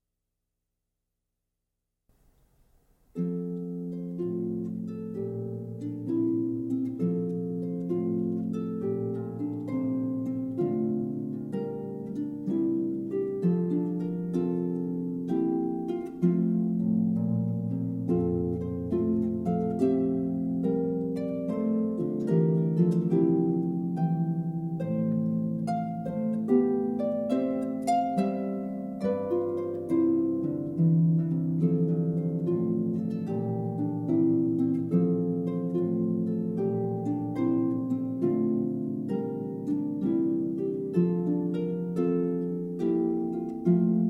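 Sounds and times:
harp: 2.8 - 44.0.

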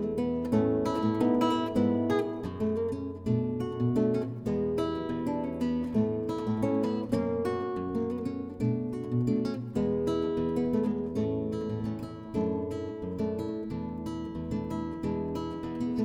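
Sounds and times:
guitar piece: 0.0 - 16.0.

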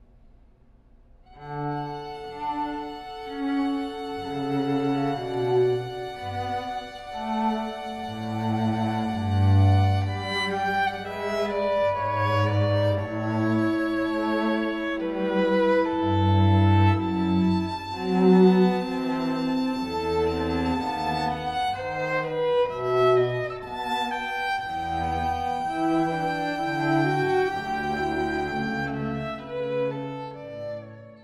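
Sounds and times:
string trio playing: 1.3 - 31.2.

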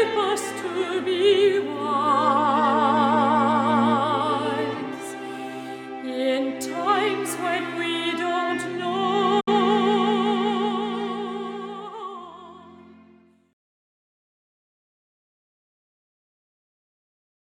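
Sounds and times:
string quartet: 0.0 - 13.4.

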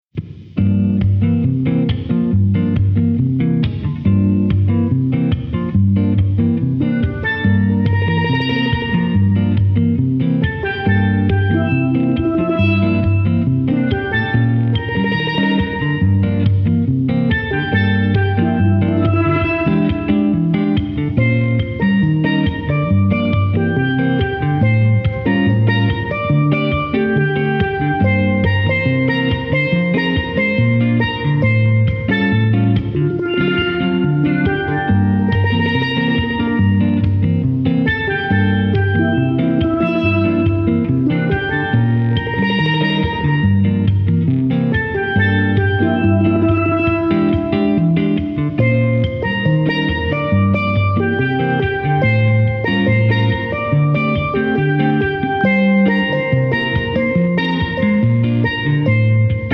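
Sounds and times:
jazz duo playing steel strings: 0.3 - 59.5.

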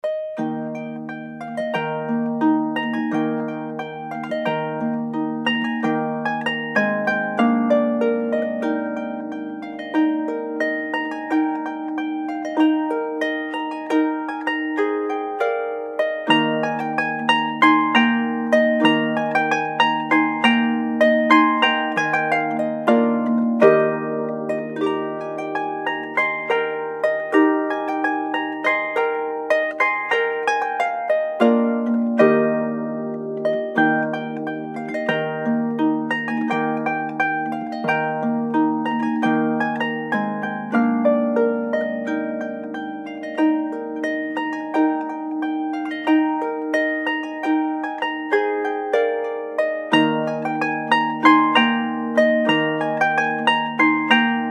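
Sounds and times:
harp: 0.0 - 54.4.

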